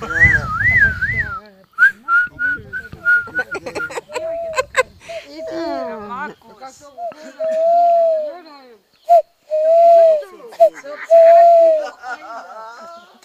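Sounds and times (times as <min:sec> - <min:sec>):
person whistling a bird call imitation: 0:00.0 - 0:04.6, 0:07.0 - 0:11.9
laughter: 0:03.3 - 0:05.2, 0:10.5 - 0:13.2.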